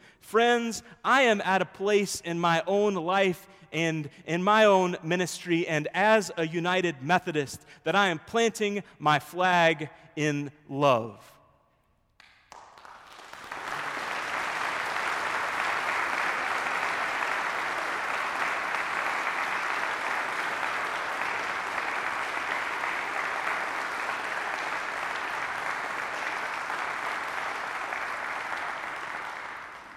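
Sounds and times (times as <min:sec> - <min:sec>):
speech: 0:00.3 - 0:11.3
crowd applauding: 0:12.2 - 0:29.9.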